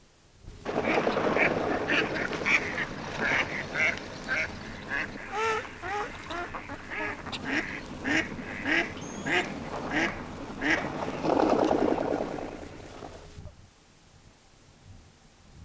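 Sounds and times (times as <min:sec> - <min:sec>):
several ducks quacking: 0:00.6 - 0:13.3.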